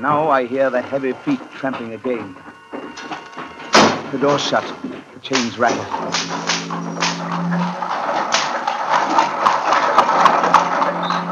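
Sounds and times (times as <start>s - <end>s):
speech: 0.0s - 2.5s, 4.1s - 6.4s
heavy wheels rolling down a rocky way: 0.0s - 11.3s.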